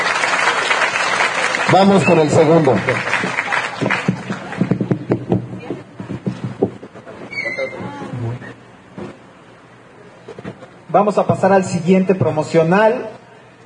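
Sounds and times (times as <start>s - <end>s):
group applauding: 0.0s - 5.3s
speech: 1.7s - 4.1s, 11.0s - 13.6s.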